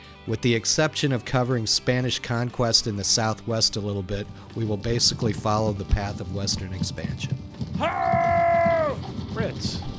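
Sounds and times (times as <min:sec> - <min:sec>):
speech: 0:00.2 - 0:08.3, 0:09.4 - 0:09.9
rough creaks and rattles: 0:04.9 - 0:09.9
creaking groan: 0:07.8 - 0:09.9.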